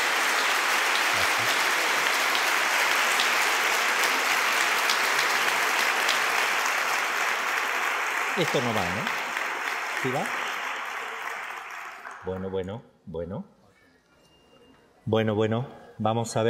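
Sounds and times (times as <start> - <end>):
audience applauding to welcome a priest arriving for a conference: 0.0 - 12.5
speech: 8.4 - 9.2, 10.0 - 10.4, 12.2 - 13.6, 15.1 - 16.4.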